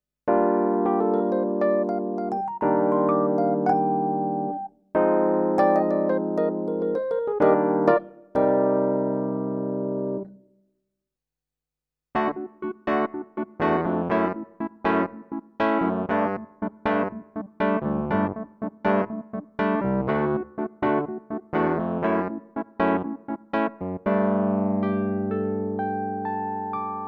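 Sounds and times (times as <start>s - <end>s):
Kawai ES7 electric piano: 0.3s - 10.4s, 12.2s - 27.0s.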